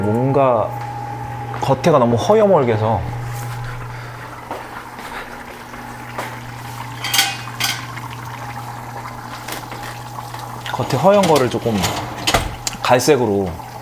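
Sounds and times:
speech: 0.0 - 0.8, 1.7 - 3.2, 10.8 - 12.1, 12.9 - 13.6
steady low fan hum: 0.0 - 13.8
oven door metallic clunks during home cooking: 10.7 - 12.9.

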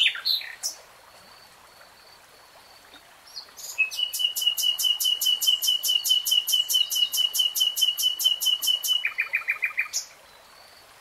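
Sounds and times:
nightingale singing: 0.0 - 0.8, 3.3 - 10.5.

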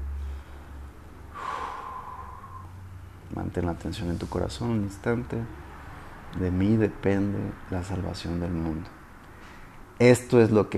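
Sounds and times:
deep inhale: 0.0 - 3.2, 9.2 - 9.9
faint low hum: 0.0 - 10.7
speech: 3.4 - 5.7, 6.3 - 9.0, 10.0 - 10.7.

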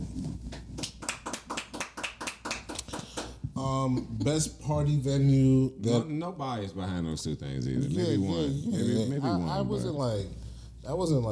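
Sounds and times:
clapping: 0.5 - 3.4
speech: 3.6 - 11.3.

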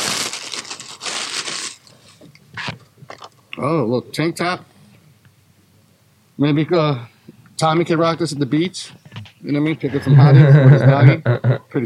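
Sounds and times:
plastic bag crinkling as a shirt is pulled out: 0.0 - 2.0
speech: 3.6 - 4.7, 6.4 - 11.8
laughter: 9.9 - 11.7.

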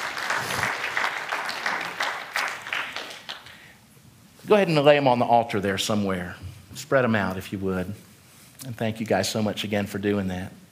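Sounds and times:
applause: 0.0 - 3.7
speech: 4.5 - 10.6.

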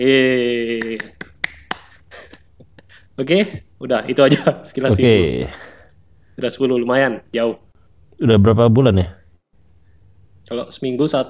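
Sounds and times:
speech: 0.0 - 1.1, 3.2 - 5.7, 6.4 - 7.6, 8.2 - 9.2, 10.5 - 11.2
sharp crisp hand claps: 0.7 - 2.4
laughter: 4.2 - 5.3.

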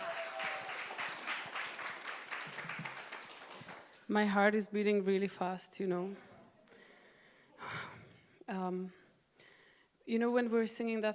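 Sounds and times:
faint voices and cheers: 0.0 - 1.3
crowd applauding: 0.0 - 4.1
speech: 4.1 - 6.3, 8.6 - 9.0, 10.1 - 11.1.

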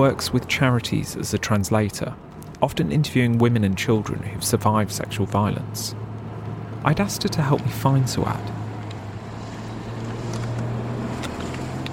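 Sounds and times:
speech: 0.0 - 6.1, 6.8 - 8.6
car engine drone on a hillside road in northern Iraq at dusk: 0.0 - 11.9.

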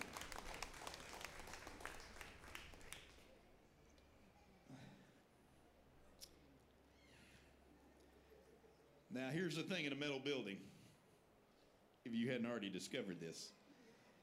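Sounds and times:
audience clapping: 0.0 - 3.4
speech: 9.1 - 10.8, 12.2 - 13.6.

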